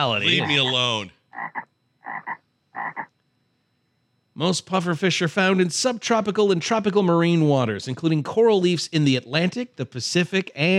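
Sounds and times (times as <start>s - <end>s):
speech: 0.0s - 1.7s, 4.4s - 10.7s
golden poison frog croaking: 0.4s - 3.1s.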